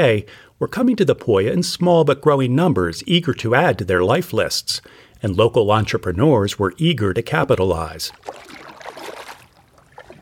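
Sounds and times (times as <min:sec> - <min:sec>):
speech: 0:00.0 - 0:08.6
water dripping: 0:07.4 - 0:10.2
water splashing and gurgling as a canoe glides along a shallow river: 0:07.7 - 0:10.2.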